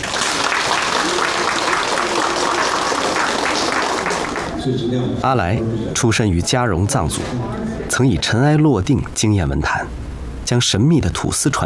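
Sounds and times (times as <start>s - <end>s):
audience applause: 0.0s - 4.6s
speech: 4.7s - 11.6s.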